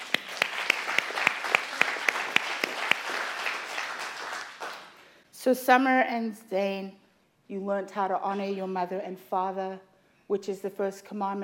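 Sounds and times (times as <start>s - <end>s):
scattered applause: 0.0s - 5.1s
rhythmic audience clapping: 0.0s - 5.2s
speech: 5.4s - 11.4s.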